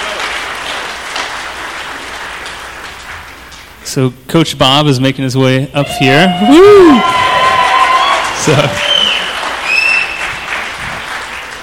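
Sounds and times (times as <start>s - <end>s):
church congregation clapping as a speaker comes up: 0.0s - 3.9s, 6.9s - 11.6s
speech: 3.9s - 7.3s, 8.4s - 8.8s.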